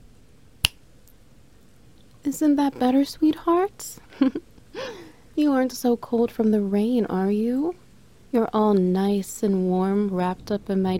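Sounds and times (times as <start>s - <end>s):
finger snap: 0.6s - 0.8s
speech: 2.2s - 10.9s.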